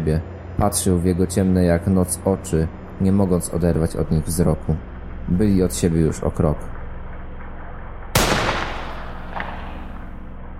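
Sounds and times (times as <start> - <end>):
speech: 0.0 - 6.8
low hum: 0.0 - 10.5
gunshot: 8.2 - 10.0.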